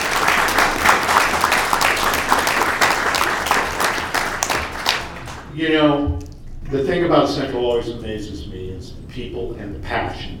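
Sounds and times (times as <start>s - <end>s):
applause: 0.0s - 5.5s
speech: 5.6s - 10.3s.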